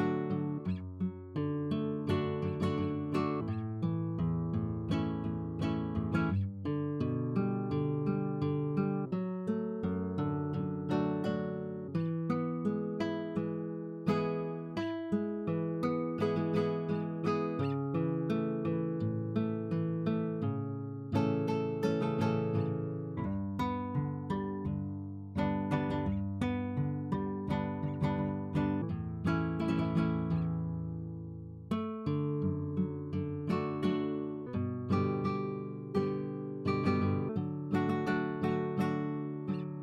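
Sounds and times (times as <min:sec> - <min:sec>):
nylon guitar picking and strumming: 0:00.0 - 0:39.8.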